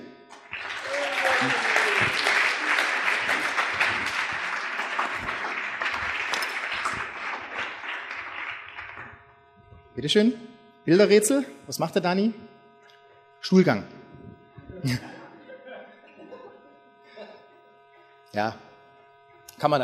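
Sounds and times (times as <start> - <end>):
audience applause: 0.3 - 9.4
laughter: 0.8 - 7.7, 14.6 - 17.5
speech: 10.0 - 12.4, 13.4 - 14.0, 14.8 - 15.2, 18.3 - 18.7, 19.6 - 19.8.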